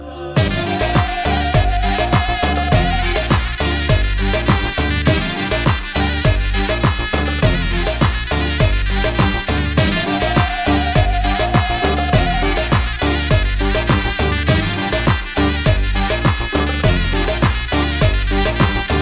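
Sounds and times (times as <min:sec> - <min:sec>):
Balkan beat music: 0:00.4 - 0:18.9.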